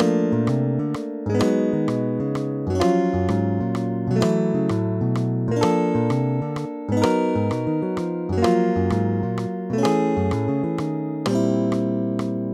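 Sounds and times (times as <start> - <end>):
blues guitar duet in triplet eighths and 3/4 time: 0.0 - 12.5.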